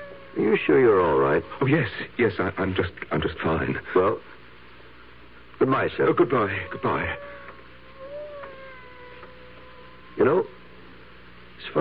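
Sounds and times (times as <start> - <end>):
cat meowing: 0.0 - 1.8, 6.4 - 10.6
faint steady hum: 0.0 - 11.8
speech: 0.4 - 4.4, 5.6 - 7.4, 10.2 - 10.6, 11.6 - 11.8.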